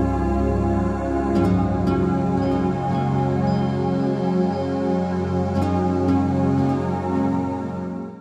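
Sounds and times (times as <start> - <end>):
relaxing music: 0.0 - 8.1.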